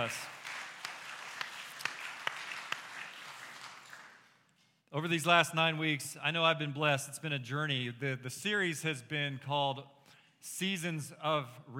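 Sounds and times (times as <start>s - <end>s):
speech: 0.0s - 0.4s, 4.9s - 11.7s
audience applause: 0.0s - 4.3s.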